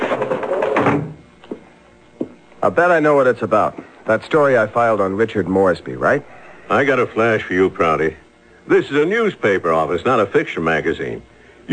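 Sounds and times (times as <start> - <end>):
door shut in a newspaper office during a radio drama: 0.0 - 1.2
speech: 2.6 - 11.7.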